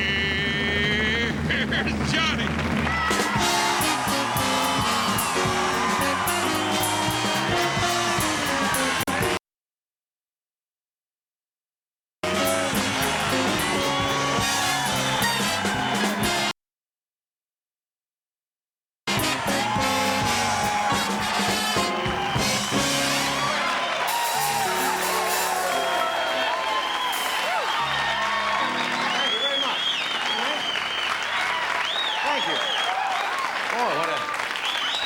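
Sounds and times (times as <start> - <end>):
studio audience clapping and cheering: 0.6 - 9.4, 12.2 - 16.5, 19.1 - 35.0.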